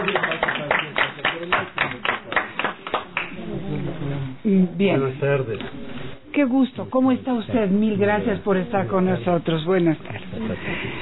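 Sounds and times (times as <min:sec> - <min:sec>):
audience applause: 0:00.0 - 0:03.4
speech: 0:04.5 - 0:05.8, 0:06.4 - 0:10.9.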